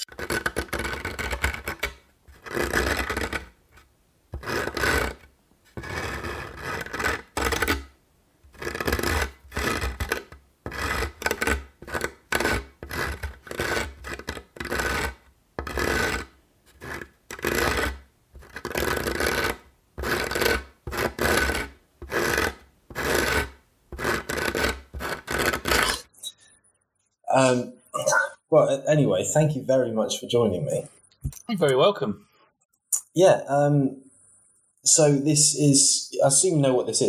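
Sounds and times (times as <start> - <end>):
barrel being scraped: 0.0 - 26.1
speech: 27.4 - 27.8, 28.5 - 32.3, 33.2 - 34.0, 34.9 - 37.0.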